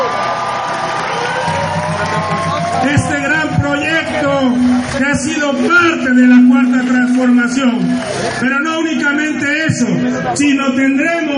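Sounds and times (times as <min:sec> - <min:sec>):
crowd cheering at an event honouring the engineer of the Dos Bocas refinery: 0:00.0 - 0:11.3
speech: 0:02.7 - 0:11.3.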